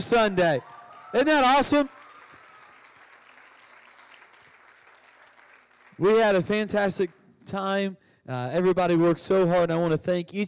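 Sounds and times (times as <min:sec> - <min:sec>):
speech: 0:00.0 - 0:02.0, 0:06.0 - 0:10.4
audience hand clapping: 0:00.0 - 0:07.3.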